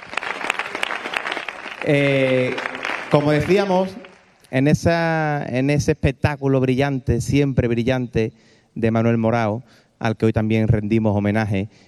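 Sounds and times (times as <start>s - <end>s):
audience applause: 0.0s - 4.4s
speech: 1.8s - 11.8s.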